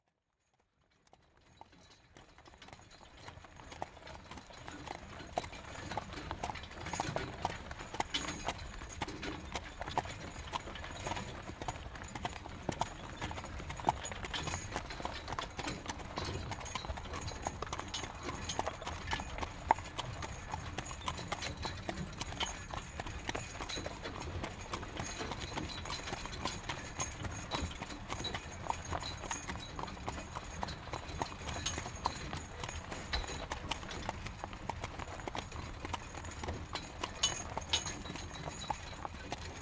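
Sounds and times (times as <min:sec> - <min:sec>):
Canadian horse carriage: 0:00.0 - 0:39.6.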